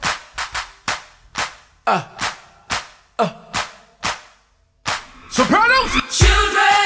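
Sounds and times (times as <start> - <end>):
hands clapping: 0.0 - 5.1
speech: 1.9 - 2.1, 3.2 - 3.4, 5.4 - 6.7.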